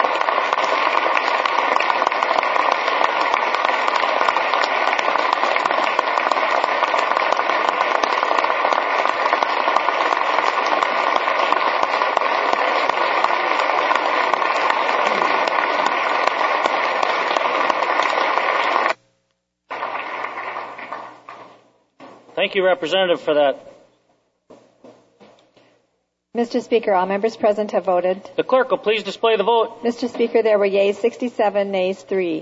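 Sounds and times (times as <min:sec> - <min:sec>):
assembly applause: 0:00.0 - 0:19.0, 0:19.7 - 0:21.7
speech: 0:22.5 - 0:23.7, 0:26.4 - 0:32.4.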